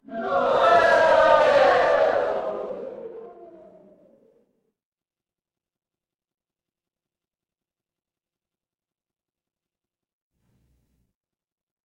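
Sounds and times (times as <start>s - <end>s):
crowd cheering: 0.0s - 4.3s.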